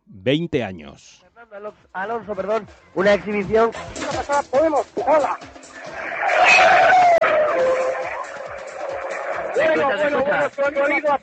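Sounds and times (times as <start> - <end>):
speech: 0.2 - 5.6, 9.6 - 11.2
racing car passing at high speed: 5.6 - 9.8.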